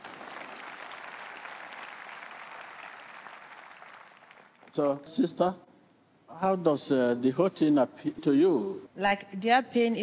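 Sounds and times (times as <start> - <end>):
audience clapping: 0.0 - 4.8
speech: 4.7 - 5.7, 6.4 - 10.0.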